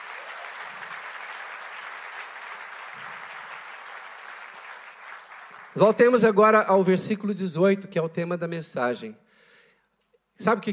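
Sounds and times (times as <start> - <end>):
audience applause: 0.0 - 6.2
speech: 5.8 - 9.2, 10.4 - 10.7.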